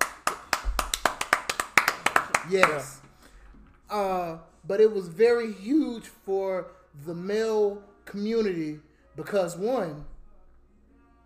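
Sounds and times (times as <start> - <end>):
hand clapping applause: 0.0 - 3.2
speech: 2.5 - 3.0, 3.9 - 10.1.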